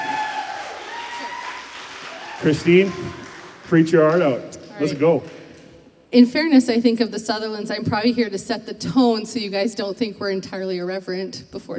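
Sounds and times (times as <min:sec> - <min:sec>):
crowd applause: 0:00.0 - 0:05.9
speech: 0:02.4 - 0:05.4, 0:06.1 - 0:11.7.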